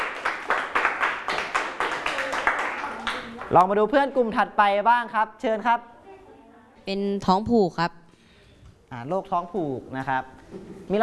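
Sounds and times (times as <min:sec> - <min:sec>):
classmates clapping: 0:00.0 - 0:03.7
speech: 0:03.5 - 0:05.9, 0:06.9 - 0:08.0, 0:08.9 - 0:11.0.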